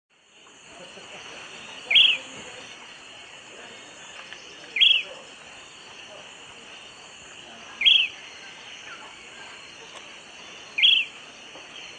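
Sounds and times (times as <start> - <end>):
bird call with short sharp high notes: 1.6 - 2.7, 4.1 - 5.3, 7.5 - 11.9.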